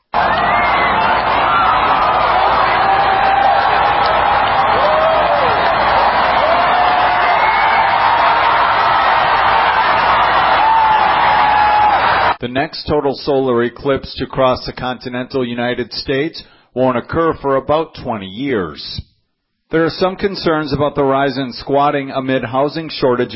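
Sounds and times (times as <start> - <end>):
massive crowd cheering at eclipse watch party in the Indianapolis Motor Speedway: 0.0 - 12.4
speech: 12.6 - 19.1, 19.7 - 23.3.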